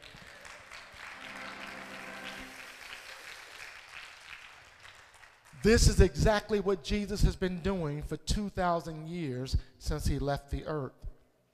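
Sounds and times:
audience clapping hands: 0.0 - 6.1
speech: 5.6 - 11.0.

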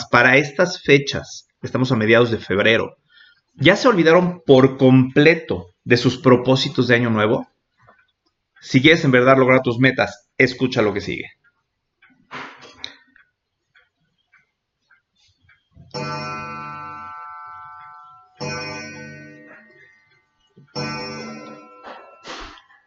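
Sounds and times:
speech: 0.1 - 3.0, 3.6 - 7.5, 8.6 - 11.4
bell chimes striking the hour: 15.9 - 22.6.

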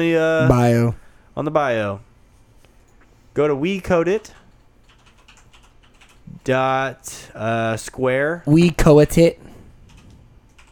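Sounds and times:
speech: 0.0 - 2.1, 3.4 - 4.4, 6.4 - 9.4
typing on a computer keyboard: 4.4 - 6.2, 9.9 - 10.7.

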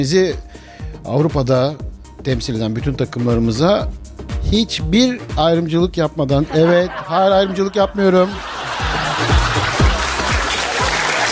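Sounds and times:
speech: 0.0 - 8.5
laughter: 6.4 - 11.2
applause: 8.6 - 11.2.

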